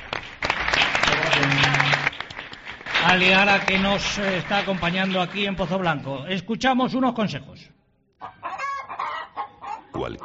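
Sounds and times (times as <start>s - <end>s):
audience applause for a band: 0.0s - 5.8s
speech: 3.1s - 8.4s, 10.0s - 10.2s.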